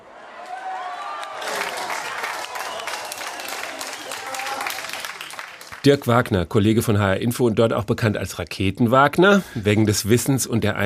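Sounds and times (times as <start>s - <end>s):
scientists' excited voices and whoops: 0.3s - 5.0s
scientists clapping in a control centre: 0.3s - 6.3s
speech: 5.8s - 10.8s.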